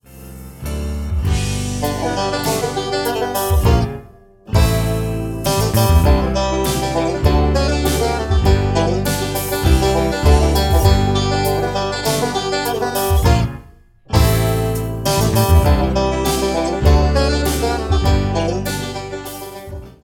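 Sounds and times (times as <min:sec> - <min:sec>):
bluegrass banjo music: 0:00.6 - 0:20.0.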